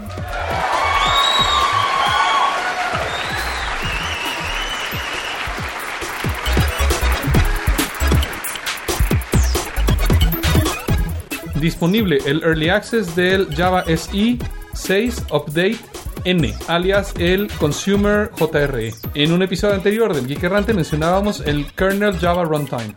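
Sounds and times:
applause and cheering sound effect: 0:00.0 - 0:11.0
speech: 0:11.6 - 0:22.9.

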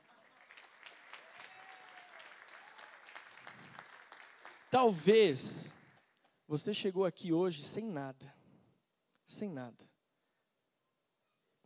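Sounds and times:
audience applause: 0:00.0 - 0:06.0
speech: 0:04.7 - 0:05.6, 0:06.5 - 0:08.4, 0:09.4 - 0:09.9.

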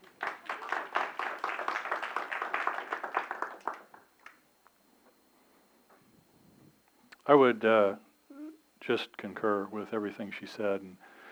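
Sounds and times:
audience clapping: 0:00.0 - 0:04.5
speech: 0:07.3 - 0:08.1, 0:08.8 - 0:11.1.

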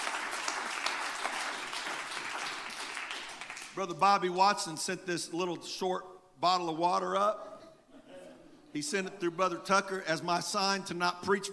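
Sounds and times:
audience clapping hands: 0:00.0 - 0:03.8
speech: 0:03.8 - 0:07.5, 0:08.7 - 0:11.5.

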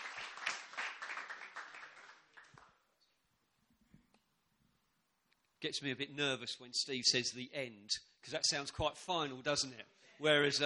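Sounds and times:
audience clapping: 0:00.0 - 0:02.9
speech: 0:05.6 - 0:10.6.

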